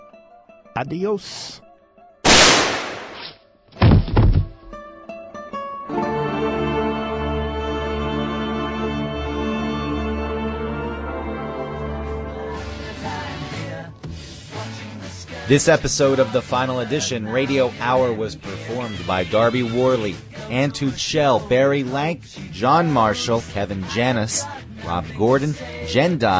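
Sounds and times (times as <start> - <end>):
music: 0.0 - 2.3, 3.4 - 26.3
speech: 0.8 - 1.6, 15.5 - 26.3
shotgun blasts in a radio comedy sketch: 2.3 - 4.4.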